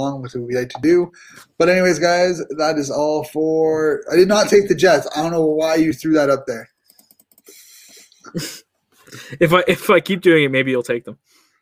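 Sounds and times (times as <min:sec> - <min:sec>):
speech: 0:00.0 - 0:06.7, 0:08.3 - 0:11.3
fingers typing on a computer keyboard: 0:06.8 - 0:07.9.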